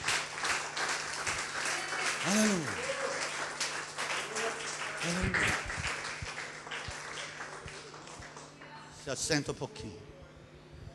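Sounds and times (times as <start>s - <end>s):
audience applauding in a church: 0.0s - 8.6s
speech: 2.2s - 2.8s, 9.1s - 10.2s.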